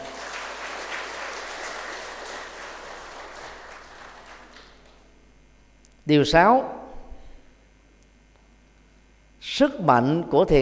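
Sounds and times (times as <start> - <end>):
crowd applauding: 0.0 - 5.1
speech: 6.1 - 6.8, 9.6 - 10.6.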